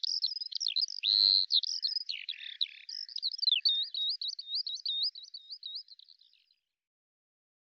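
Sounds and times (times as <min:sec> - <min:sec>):
bird song: 0:00.0 - 0:06.8.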